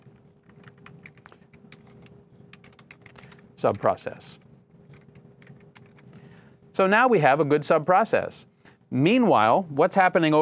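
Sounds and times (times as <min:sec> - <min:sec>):
computer keyboard typing: 0:00.0 - 0:04.0, 0:04.8 - 0:06.1
faint steady hum: 0:00.0 - 0:10.4
speech: 0:03.6 - 0:04.4, 0:06.8 - 0:10.4.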